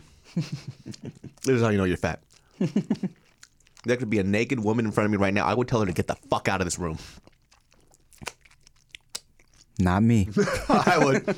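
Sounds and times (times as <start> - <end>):
speech: 0.3 - 7.3, 9.8 - 11.3
crunchy chewing on chicken wings: 0.7 - 4.0, 5.8 - 9.9
laughter: 10.4 - 11.3.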